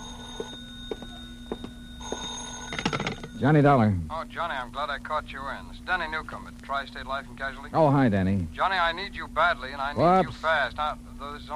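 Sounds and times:
telephone bell ringing: 0.0s - 3.8s
speech: 3.4s - 11.5s.

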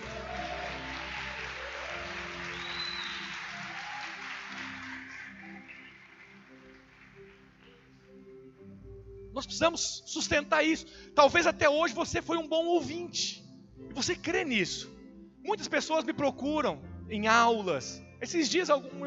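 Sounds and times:
audience applause: 0.0s - 8.1s
speech: 9.4s - 13.4s, 14.0s - 14.9s, 15.5s - 19.0s.

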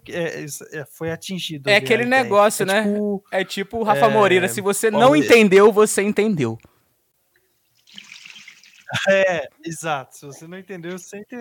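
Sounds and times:
speech: 0.1s - 6.7s, 8.9s - 11.3s
urine stream trickling: 7.3s - 9.0s.

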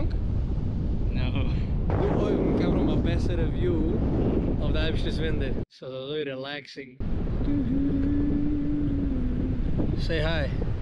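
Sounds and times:
wind rushing during a flight in cold, blustery weather: 0.0s - 5.6s, 7.0s - 10.8s
speech: 3.2s - 8.2s, 10.0s - 10.7s
faint droning tone: 7.1s - 10.0s.

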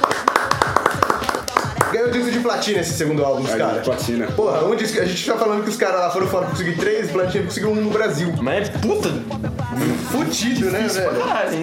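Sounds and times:
hand clapping: 0.0s - 2.5s
speech: 1.9s - 11.6s
laughter: 9.8s - 11.6s.

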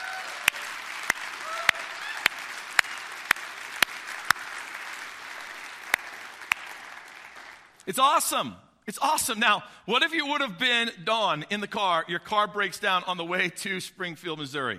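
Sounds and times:
audience applauding: 0.0s - 7.8s
speech: 7.9s - 14.7s.

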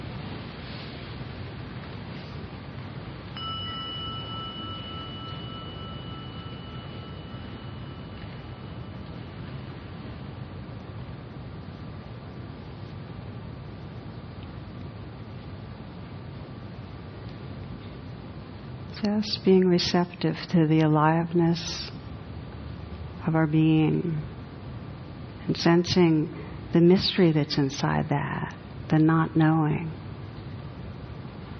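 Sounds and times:
constant hiss: 0.0s - 31.5s
gong ringing: 3.4s - 9.2s
speech: 19.0s - 22.0s, 23.3s - 24.3s, 25.5s - 30.0s.

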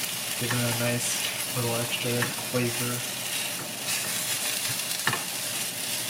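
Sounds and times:
potatoes and cheese frying in a pan: 0.0s - 6.0s
speech: 0.4s - 3.2s
stirring scrape: 3.2s - 6.0s.

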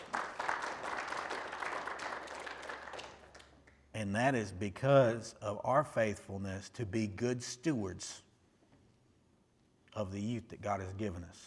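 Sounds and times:
audience hand clapping: 0.0s - 3.9s
speech: 4.0s - 8.2s, 10.0s - 11.4s.

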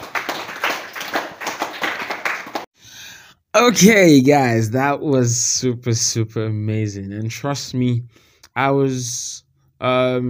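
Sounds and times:
group clapping in a steady rhythm: 0.0s - 2.7s
speech: 3.6s - 10.2s.

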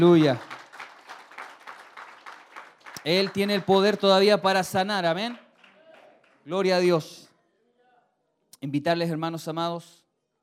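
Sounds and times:
speech: 0.0s - 0.5s, 3.0s - 5.4s, 6.4s - 7.2s, 8.6s - 10.0s
audience applause: 0.0s - 4.4s, 5.3s - 6.5s.

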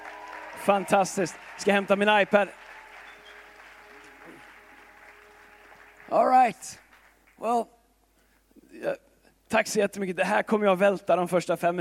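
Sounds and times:
audience applause: 0.0s - 7.5s
speech: 0.6s - 2.6s, 6.1s - 6.8s, 7.4s - 7.8s, 8.8s - 11.7s.

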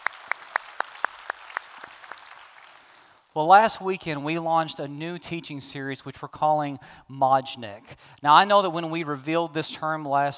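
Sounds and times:
church congregation clapping: 0.0s - 3.4s
speech: 3.4s - 10.3s.

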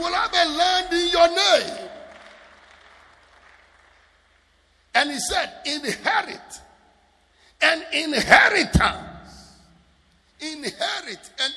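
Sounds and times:
audience clapping: 0.0s - 4.5s
speech: 5.0s - 6.7s, 7.6s - 9.1s, 10.4s - 11.5s.

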